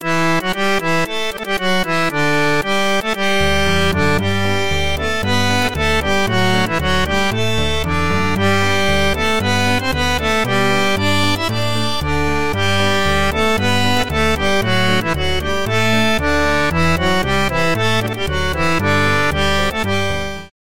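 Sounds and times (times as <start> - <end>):
accordion: 0.0 - 20.5.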